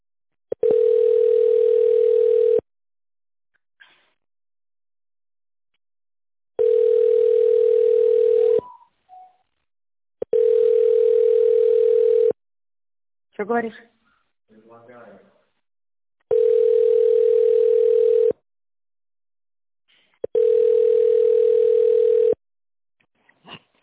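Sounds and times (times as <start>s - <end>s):
telephone signal tones before extension dialing: 0.6s - 2.6s, 6.6s - 9.3s, 10.2s - 12.4s, 16.3s - 18.4s, 20.3s - 22.4s
speech: 13.5s - 14.0s.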